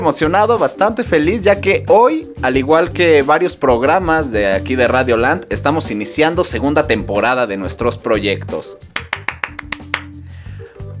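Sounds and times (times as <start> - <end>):
speech: 0.1 - 9.1
applause: 9.0 - 10.1.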